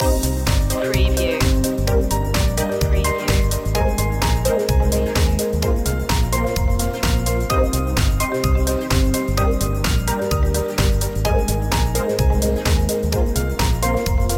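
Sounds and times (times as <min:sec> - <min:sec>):
beat loop: 0:00.0 - 0:14.3.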